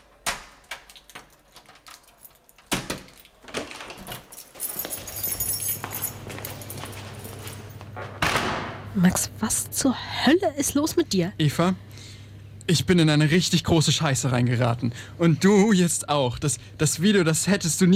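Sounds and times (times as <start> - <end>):
door being worked open: 0.0 - 8.9
low steady hum: 0.0 - 17.9
keys jangling and clattering in a lock: 0.8 - 8.0
speech: 9.0 - 11.9, 12.7 - 17.9.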